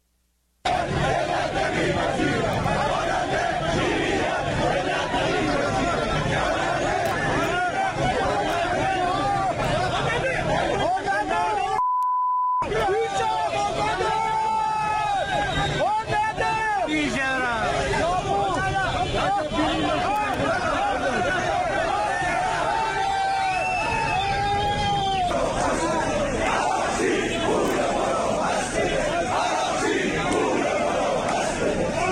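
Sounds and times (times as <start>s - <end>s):
protest crowd shouting and chanting: 0.6s - 11.8s, 12.6s - 32.1s
electronic beep: 11.8s - 12.6s.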